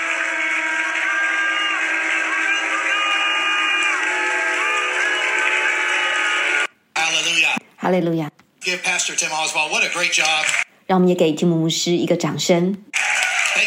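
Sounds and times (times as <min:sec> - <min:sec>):
crowd shouting and cheering in praise: 0:00.0 - 0:06.7, 0:09.8 - 0:10.6, 0:12.9 - 0:13.6
speech: 0:07.9 - 0:13.0.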